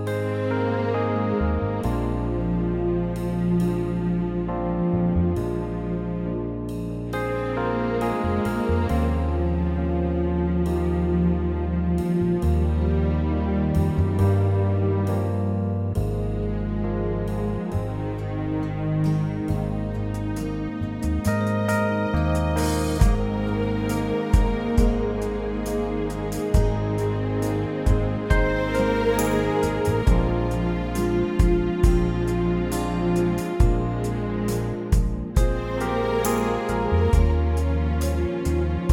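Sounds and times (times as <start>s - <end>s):
orchestral sound in A flat: 0.1s - 6.4s, 7.2s - 38.9s.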